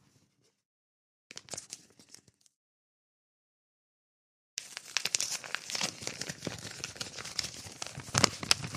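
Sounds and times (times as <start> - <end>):
paper envelopes of letters torn open: 4.6 - 8.7.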